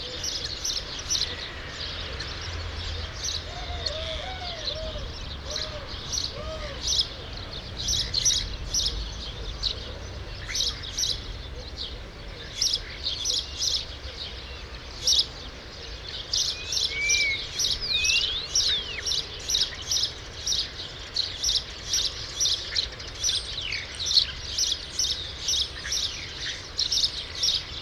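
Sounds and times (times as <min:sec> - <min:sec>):
sparrows chirping: 0:00.0 - 0:27.8
low background rumble: 0:04.6 - 0:12.5.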